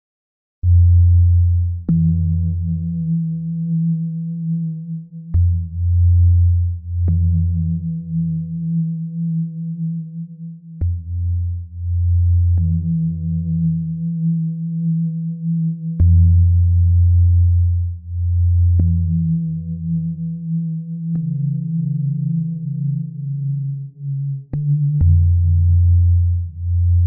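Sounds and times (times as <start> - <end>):
ambient music: 0.6 - 27.0.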